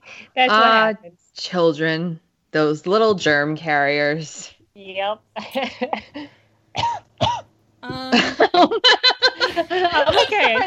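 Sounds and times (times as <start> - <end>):
speech: 0.4 - 7.1, 7.8 - 10.6
person coughing: 6.8 - 8.5
laughter: 7.8 - 10.6.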